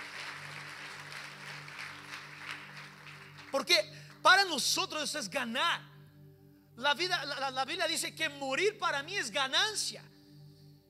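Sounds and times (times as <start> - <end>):
applause: 0.0 - 4.2
speech: 3.6 - 5.9, 6.8 - 10.1.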